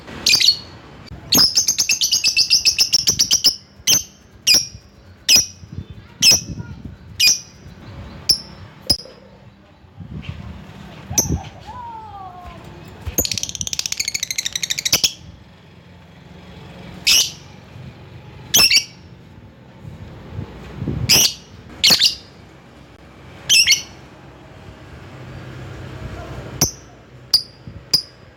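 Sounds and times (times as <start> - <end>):
lovebird chirping: 0.2 - 10.4, 12.8 - 15.4, 17.0 - 17.5, 18.5 - 19.0, 21.1 - 22.4, 23.5 - 24.0, 26.6 - 28.3.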